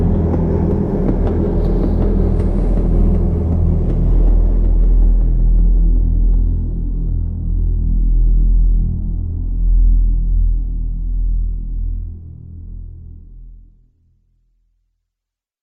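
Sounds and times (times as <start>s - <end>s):
ambience music: 0.0s - 11.4s.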